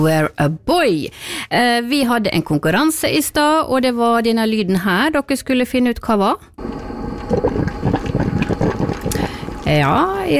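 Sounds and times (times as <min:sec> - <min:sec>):
speech: 0:00.0 - 0:07.7, 0:09.7 - 0:10.3
coffee maker brewing: 0:06.6 - 0:10.3.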